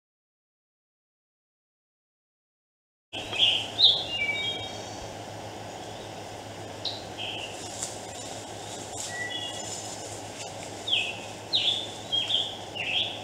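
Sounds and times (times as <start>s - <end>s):
scarlet tanager singing hoarse burry phrases: 3.2s - 13.2s.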